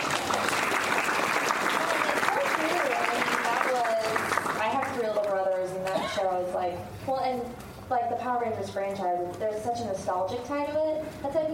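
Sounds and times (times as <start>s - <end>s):
audience applause: 0.0s - 5.1s
faint crowd voices: 0.0s - 11.5s
speech: 8.1s - 11.5s.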